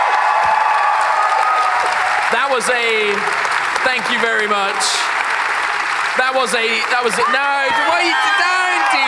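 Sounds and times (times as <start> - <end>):
audience applause: 0.0 - 9.0
speech: 2.5 - 5.2, 6.2 - 9.0.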